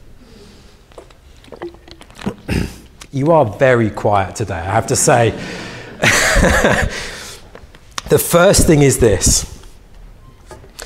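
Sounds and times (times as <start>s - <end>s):
person swigging water: 0.9s - 3.1s
speech: 3.1s - 7.2s, 8.1s - 9.6s
laughter: 4.9s - 7.2s.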